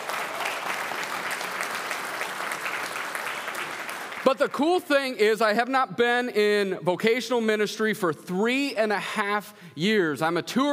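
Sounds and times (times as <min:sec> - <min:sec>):
round of applause: 0:00.0 - 0:04.6
speech: 0:04.2 - 0:10.7.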